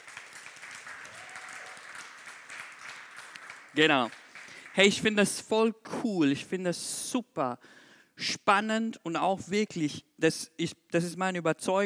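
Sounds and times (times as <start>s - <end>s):
audience applause: 0.0s - 5.2s
speech: 3.8s - 4.2s, 4.8s - 11.8s.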